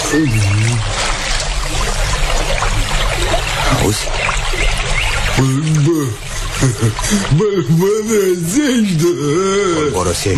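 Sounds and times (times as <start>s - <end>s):
water washing against a riverbank: 0.0s - 10.3s
speech: 0.1s - 0.9s, 2.8s - 10.3s.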